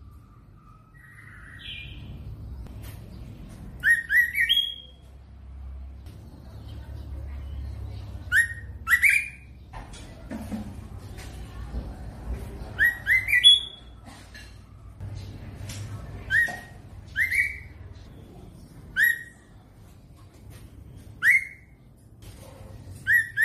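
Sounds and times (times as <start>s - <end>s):
White-rumped shama singing whistles: 3.8s - 5.0s, 8.3s - 9.5s, 12.8s - 13.8s, 16.3s - 17.7s, 21.2s - 21.7s, 23.0s - 23.4s.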